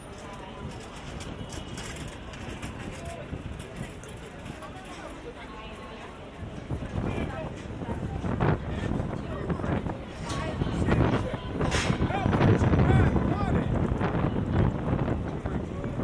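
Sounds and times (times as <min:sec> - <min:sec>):
New York street traffic: 0:00.0 - 0:16.0
crowd murmur of overlapping voices on a walk to Times Square: 0:00.0 - 0:16.0.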